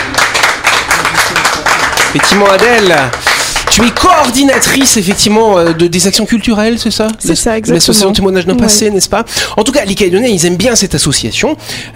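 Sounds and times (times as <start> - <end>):
crowd applauding: 0.0 - 6.0
speech: 2.1 - 11.9.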